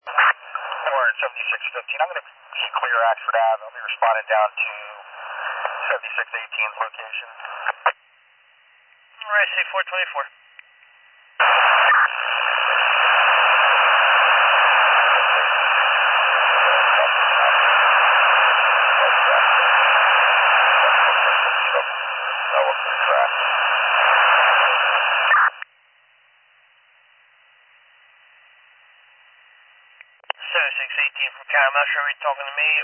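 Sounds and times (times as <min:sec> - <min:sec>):
radio static: 0:00.0 - 0:08.0, 0:09.2 - 0:10.4, 0:11.4 - 0:25.6, 0:30.2 - 0:32.8
speech: 0:00.9 - 0:04.8, 0:05.9 - 0:07.8, 0:09.3 - 0:10.4, 0:31.6 - 0:32.8.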